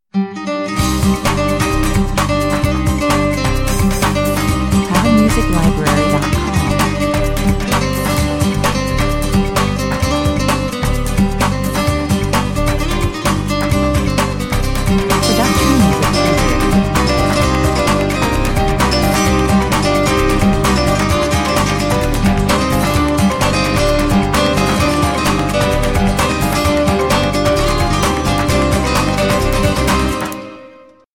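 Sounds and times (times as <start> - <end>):
flamenco music: 0.4 - 30.8.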